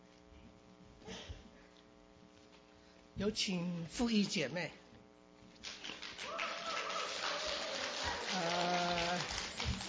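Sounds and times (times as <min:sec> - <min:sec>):
speech: 0:03.2 - 0:04.8
audience applause: 0:05.6 - 0:09.8.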